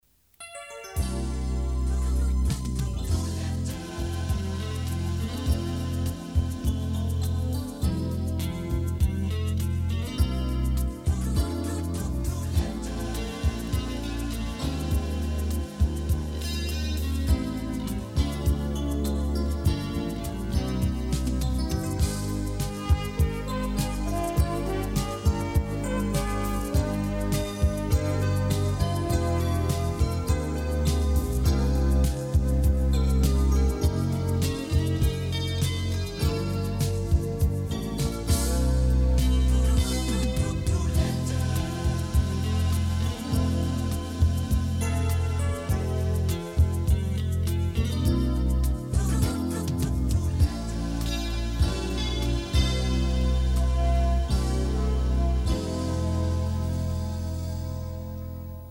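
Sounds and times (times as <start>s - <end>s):
jingle: 0.4s - 58.6s.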